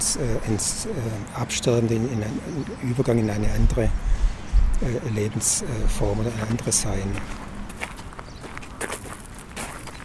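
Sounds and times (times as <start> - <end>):
speech: 0.0 - 7.4
footsteps of people walking through an art exhibition: 7.1 - 10.0.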